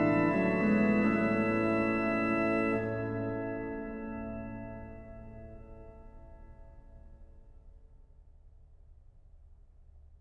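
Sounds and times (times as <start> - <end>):
organ hymn: 0.0 - 7.0.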